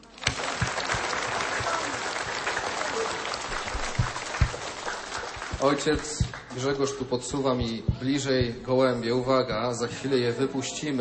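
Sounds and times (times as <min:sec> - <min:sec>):
audience applause: 0:00.0 - 0:07.7
speech: 0:05.6 - 0:10.9.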